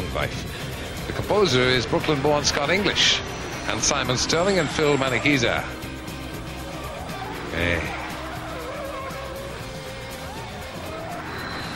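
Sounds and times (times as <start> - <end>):
white Mini engine noise: 0.0 - 11.7
speech: 0.1 - 5.8, 7.6 - 8.0
white Mini car tyres squealing as it skids: 0.4 - 11.7
crowd roaring: 0.6 - 11.7.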